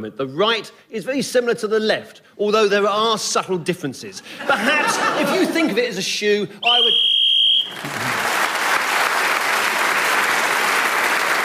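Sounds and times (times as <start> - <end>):
speech: 0.0 - 7.1
laughter: 4.2 - 5.9, 7.7 - 8.5
shrill whistle blown to end the round: 6.6 - 7.8
loud sustained applause: 7.5 - 11.4.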